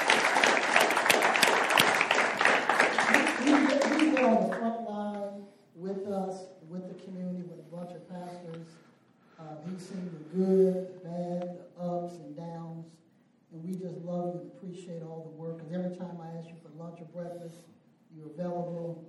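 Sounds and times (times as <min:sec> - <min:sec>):
audience round of applause: 0:00.0 - 0:04.6
man speaking: 0:03.4 - 0:19.0.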